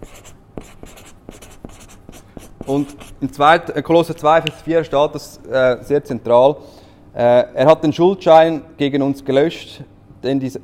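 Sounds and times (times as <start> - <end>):
handwriting of the word Buchhalter: 0.0 - 3.2
speech: 2.7 - 10.6.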